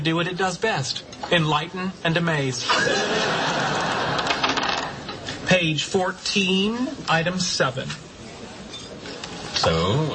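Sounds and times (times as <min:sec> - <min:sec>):
speech: 0:00.0 - 0:03.6, 0:05.5 - 0:08.1, 0:09.6 - 0:10.1
laughter: 0:02.6 - 0:05.1
Dungeons and Dragons dice being thrown: 0:04.2 - 0:05.0.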